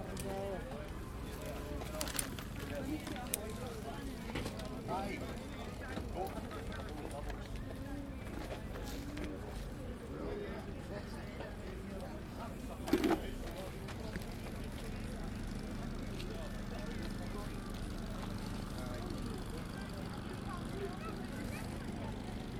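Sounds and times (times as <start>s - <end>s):
market place soundscape: 0.0s - 22.5s.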